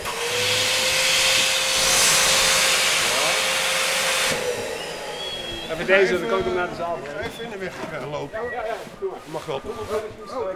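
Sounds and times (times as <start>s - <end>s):
balloon blower air rush: 0.0s - 8.0s
speech: 5.8s - 10.5s.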